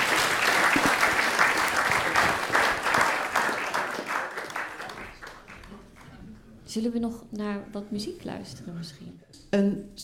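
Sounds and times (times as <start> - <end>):
audience clapping: 0.0 - 6.2
speech: 6.8 - 10.0.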